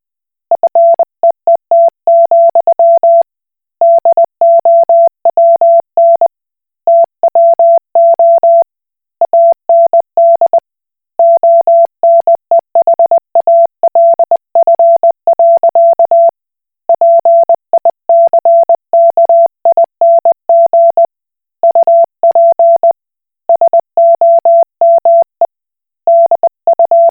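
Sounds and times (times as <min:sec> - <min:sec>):
Koch Morse code beeps: 0:00.6 - 0:03.2, 0:03.8 - 0:06.3, 0:06.9 - 0:08.6, 0:09.3 - 0:10.6, 0:11.2 - 0:16.3, 0:16.9 - 0:21.1, 0:21.6 - 0:22.9, 0:23.5 - 0:25.4, 0:26.1 - 0:27.0.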